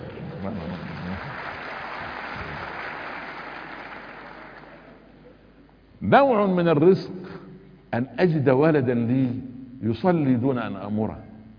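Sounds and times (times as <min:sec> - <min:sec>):
audience applause during a religious talk: 0:00.0 - 0:05.1
speech: 0:00.4 - 0:01.3, 0:06.1 - 0:07.2, 0:07.9 - 0:11.3.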